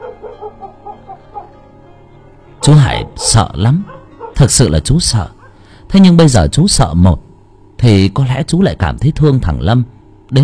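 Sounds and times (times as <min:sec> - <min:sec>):
dog barking: 0:00.0 - 0:01.5, 0:02.6 - 0:04.5
speech: 0:02.6 - 0:10.4.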